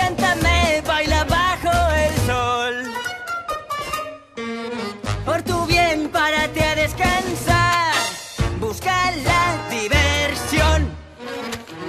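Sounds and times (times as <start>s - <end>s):
man singing in Spanish in a commercial: 0.0s - 3.3s, 5.2s - 11.1s.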